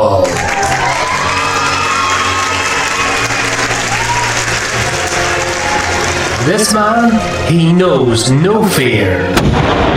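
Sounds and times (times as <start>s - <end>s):
audience applause: 0.0s - 7.5s
speech: 6.5s - 9.9s.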